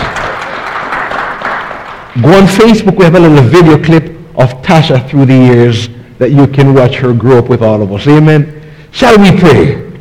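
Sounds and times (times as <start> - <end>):
audience clapping: 0.0 - 2.2
speech: 2.2 - 9.8.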